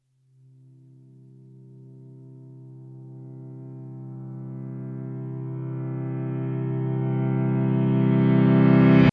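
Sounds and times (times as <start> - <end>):
reversed piano three-note tune: 2.2 - 9.1.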